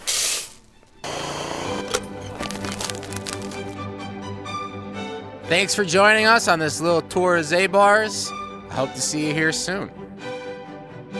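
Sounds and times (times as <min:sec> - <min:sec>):
burr grinder grinding coffee beans: 0:00.0 - 0:03.8
speech: 0:05.5 - 0:10.0.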